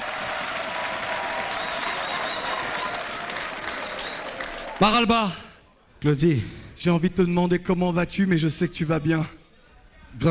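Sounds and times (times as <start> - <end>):
audience applause: 0.0 - 5.1
speech: 4.8 - 5.4, 6.0 - 9.4.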